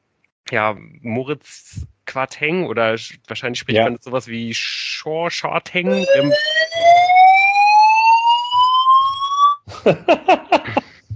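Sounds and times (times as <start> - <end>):
speech: 0.5 - 6.9, 9.8 - 10.8
laughter: 3.7 - 4.0, 5.9 - 6.3, 9.7 - 11.1
fire alarm: 5.9 - 9.6.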